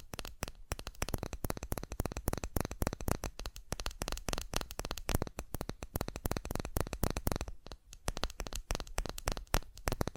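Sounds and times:
fast tapping: 0.0s - 10.1s.

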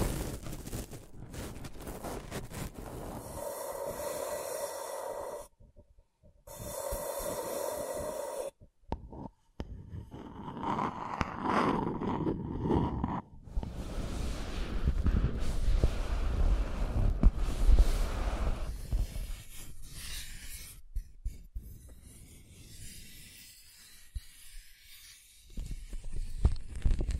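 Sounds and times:
scratching and tracing: 0.0s - 5.6s, 6.5s - 27.1s.

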